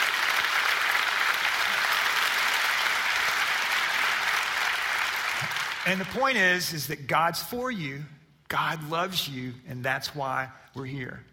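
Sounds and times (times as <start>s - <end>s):
audience applause: 0.0s - 6.2s
speech: 5.9s - 11.3s.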